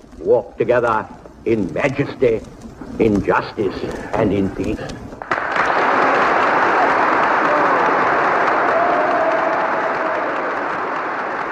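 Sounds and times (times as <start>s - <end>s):
speech: 0.2s - 5.0s
Congress audience applauding and roaring approval: 5.2s - 11.4s.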